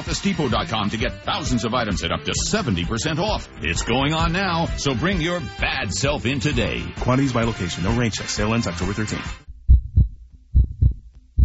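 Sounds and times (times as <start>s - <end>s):
speech: 0.1s - 9.4s
pounding heartbeat: 9.5s - 11.4s.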